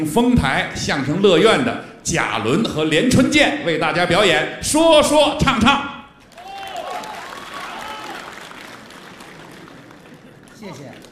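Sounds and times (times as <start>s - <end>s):
speech: 0.0s - 6.0s
audience applause: 6.2s - 11.1s.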